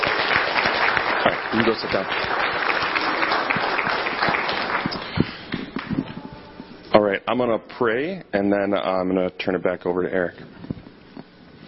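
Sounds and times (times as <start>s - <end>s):
audience applause: 0.0s - 6.2s
speech: 1.5s - 2.9s, 7.0s - 10.6s.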